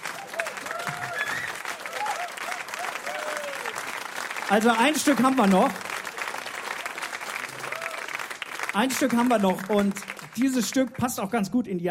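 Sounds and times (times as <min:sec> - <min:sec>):
people whooping: 0:00.0 - 0:03.9, 0:06.7 - 0:08.3
audience clapping: 0:00.0 - 0:11.5
speech: 0:04.5 - 0:05.8, 0:08.8 - 0:11.8.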